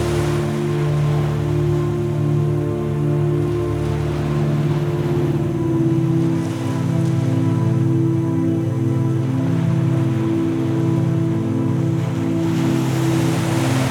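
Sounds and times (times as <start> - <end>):
gentle sleep music: 0.0 - 13.9
ocean waves: 0.0 - 13.9.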